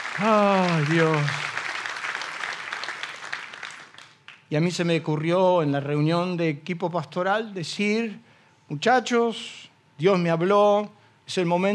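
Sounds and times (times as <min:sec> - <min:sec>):
audience applause: 0:00.0 - 0:04.4
speech: 0:00.2 - 0:01.5, 0:04.5 - 0:11.7.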